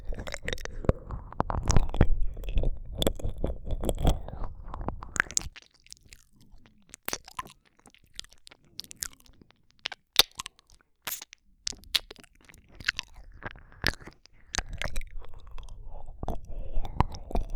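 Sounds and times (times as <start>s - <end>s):
ASMR ear licking: 0.0s - 5.7s, 10.2s - 17.5s.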